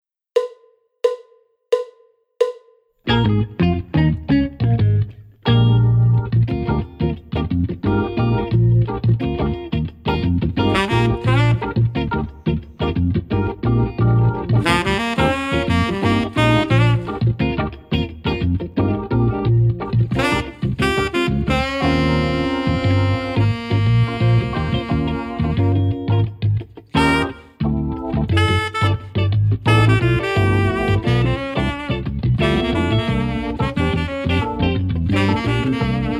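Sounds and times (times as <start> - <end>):
backing track music: 0.4 - 36.1.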